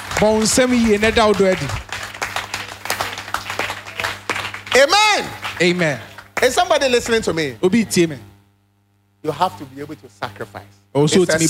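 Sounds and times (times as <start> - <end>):
audience clapping: 0.0 - 7.5
speech: 0.2 - 1.9, 4.8 - 8.3, 9.2 - 11.4.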